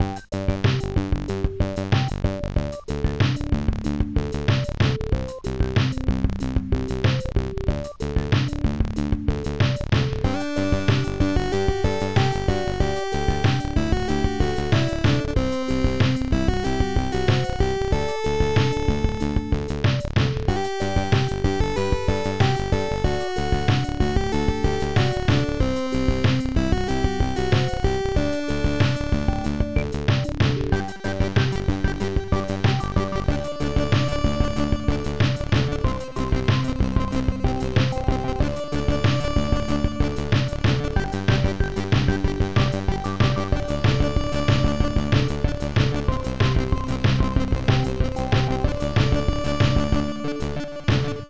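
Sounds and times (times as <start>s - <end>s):
keygen music: 0.0s - 51.2s.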